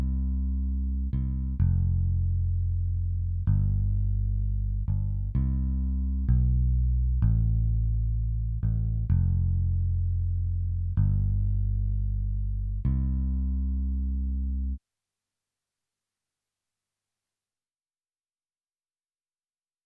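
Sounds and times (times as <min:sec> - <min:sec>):
bass: 0:00.0 - 0:14.8.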